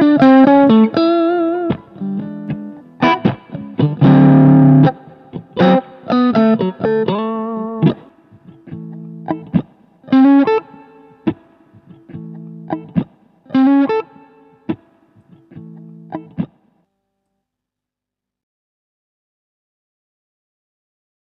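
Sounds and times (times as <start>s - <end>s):
blue Strat electric guitar: 0.0s - 16.7s.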